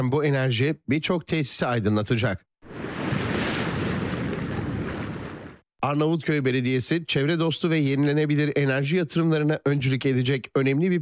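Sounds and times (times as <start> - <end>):
speech: 0.0 - 2.5, 5.8 - 11.0
gusty wind buffeting the microphone: 2.7 - 5.6
sea waves surging at Karaburun Port: 2.7 - 5.6.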